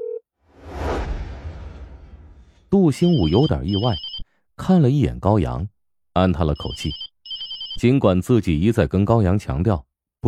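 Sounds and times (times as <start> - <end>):
speech: 2.7 - 7.0, 7.8 - 10.2
telephone dialing tones: 3.1 - 4.2, 6.9 - 7.8.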